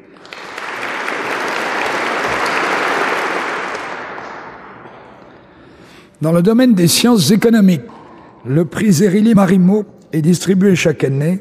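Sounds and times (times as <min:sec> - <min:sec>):
audience applause: 0:00.0 - 0:04.8
speech: 0:06.2 - 0:11.4.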